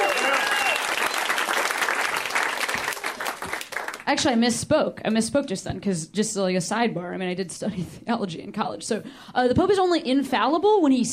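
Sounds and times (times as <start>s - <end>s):
comedy show audience cheering: 0.0s - 3.8s
speech: 4.1s - 11.1s.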